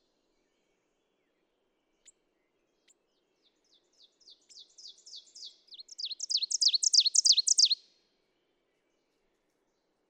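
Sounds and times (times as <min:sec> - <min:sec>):
ovenbird song: 0:00.0 - 0:07.9.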